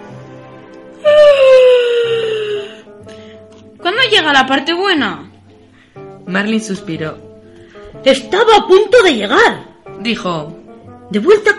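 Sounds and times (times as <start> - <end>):
person yawning: 1.0 - 2.9
speech: 4.0 - 5.3, 6.3 - 7.2, 8.0 - 11.5.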